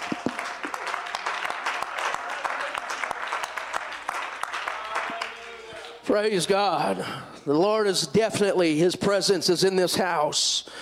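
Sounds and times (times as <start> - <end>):
crowd clapping: 0.0 - 6.1
speech: 6.1 - 10.8.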